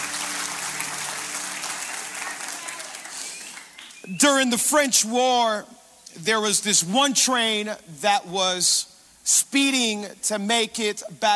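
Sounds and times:
church audience applauding and cheering: 0.0 - 4.1
speech: 4.1 - 11.3.

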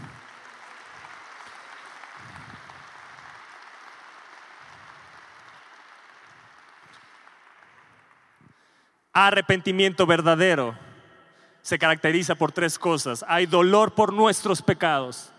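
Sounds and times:
audience applause: 0.0 - 8.8
speech: 9.2 - 10.8, 11.6 - 15.3.

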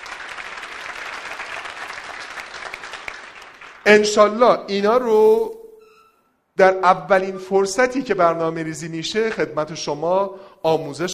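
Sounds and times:
audience clapping at a business seminar talk: 0.0 - 4.1
speech: 3.9 - 5.6, 6.6 - 11.1.

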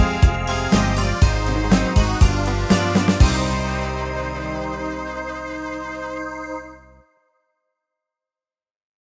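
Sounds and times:
music beat: 0.0 - 6.2.

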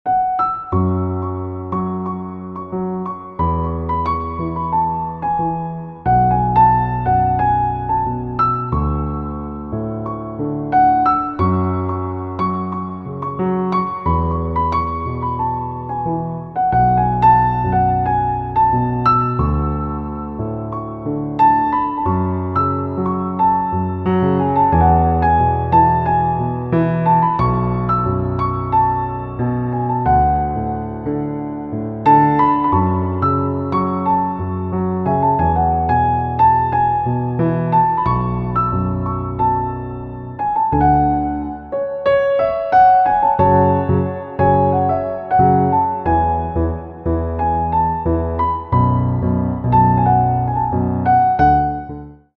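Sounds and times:
piano: 0.0 - 52.3.

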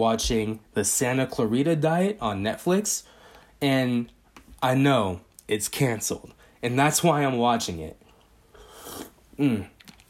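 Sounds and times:
speech: 0.0 - 8.0, 9.4 - 9.7
sipping tea: 8.1 - 10.0.

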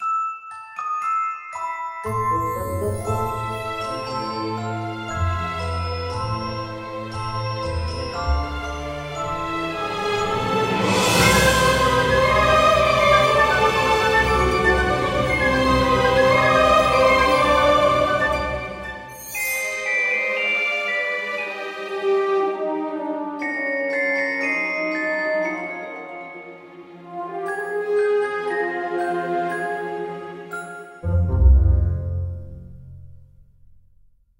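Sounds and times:
orchestral music: 2.1 - 33.4.

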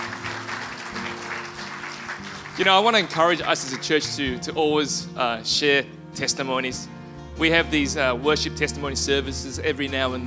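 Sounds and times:
audience applause: 0.0 - 4.1
speech: 2.6 - 10.2.

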